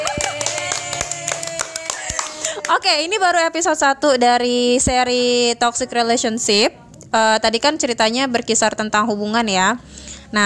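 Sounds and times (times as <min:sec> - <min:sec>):
hand clapping: 0:00.0 - 0:02.8
speech: 0:02.7 - 0:10.4.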